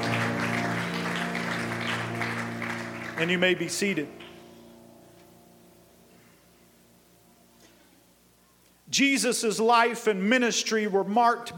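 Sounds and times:
church congregation clapping in praise: 0.0 - 4.6
sustained musical tones: 0.0 - 7.6
speech: 3.2 - 4.2, 9.0 - 11.5.

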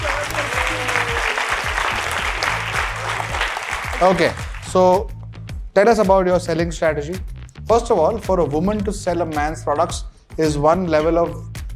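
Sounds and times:
audience applause: 0.0 - 4.7
speech: 4.0 - 5.1, 5.8 - 11.5.

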